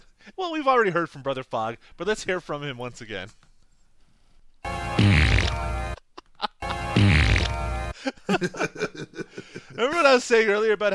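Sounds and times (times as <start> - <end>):
speech: 0.4 - 3.5, 8.0 - 10.9
farting in a comic bathroom scene of a movie: 4.7 - 6.0, 6.6 - 7.9.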